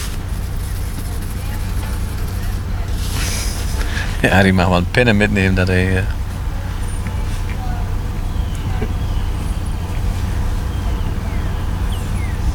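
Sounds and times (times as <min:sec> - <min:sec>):
car engine rumbling loudly while passing by: 0:00.0 - 0:12.5
faint traffic noise: 0:00.0 - 0:12.5
laughter: 0:01.0 - 0:12.5
speech: 0:04.2 - 0:06.2.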